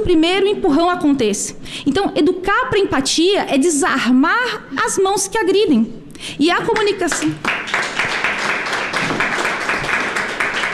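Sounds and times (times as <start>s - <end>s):
speech: 0.0s - 7.9s
audience applause: 7.1s - 10.7s.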